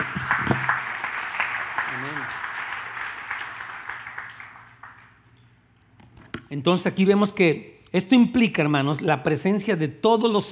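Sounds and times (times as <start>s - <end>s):
audience applause: 0.0s - 5.2s
speech: 6.5s - 10.4s.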